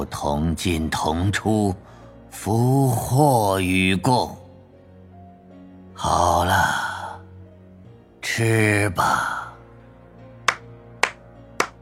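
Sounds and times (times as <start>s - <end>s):
speech: 0.0s - 4.4s, 6.0s - 6.8s, 8.4s - 9.4s
hand claps: 10.5s - 11.8s.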